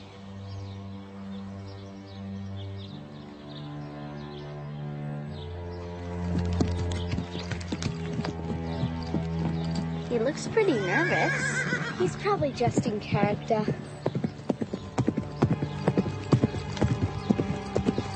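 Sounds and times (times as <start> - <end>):
sustained musical background: 0.0 - 18.1
horse hooves clip-clopping across a riding ring: 5.9 - 18.1
speech: 10.2 - 13.9.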